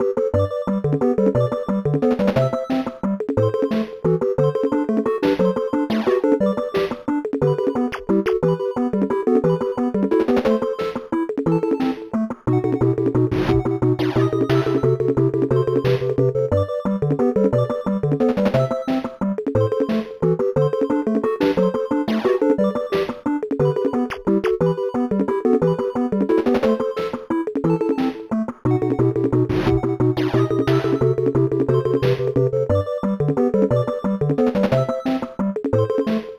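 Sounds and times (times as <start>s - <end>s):
drawing minigame background music: 0.0s - 36.3s.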